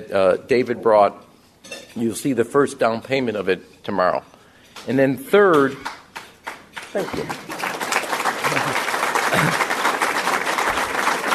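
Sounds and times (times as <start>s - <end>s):
speech: 0.0s - 5.9s, 6.9s - 7.6s
applause: 5.5s - 11.3s.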